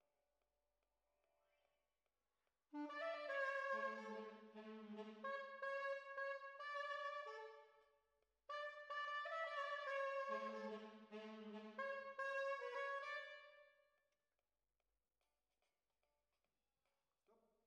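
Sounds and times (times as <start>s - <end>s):
trombones: 2.8s - 7.6s, 8.5s - 13.5s.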